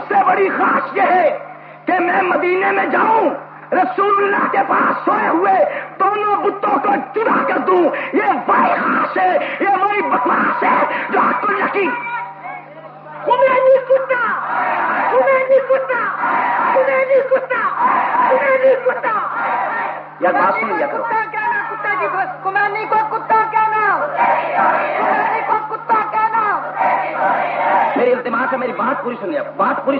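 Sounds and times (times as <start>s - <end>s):
speech: 0.1s - 12.2s, 13.2s - 25.9s, 27.0s - 29.9s
large crowd chanting slogans: 14.4s - 15.3s, 16.0s - 16.9s, 17.6s - 20.6s, 24.0s - 25.6s, 26.6s - 28.2s.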